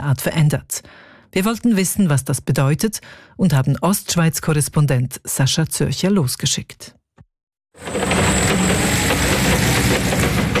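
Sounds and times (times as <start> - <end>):
speech: 0.0 - 7.0
forklift engine carrying crates of apples into a warehouse: 7.8 - 10.5.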